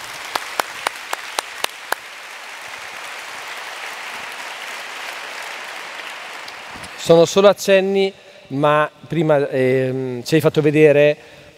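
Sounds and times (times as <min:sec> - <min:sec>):
audience applause: 0:00.0 - 0:07.1
speech: 0:06.8 - 0:11.4.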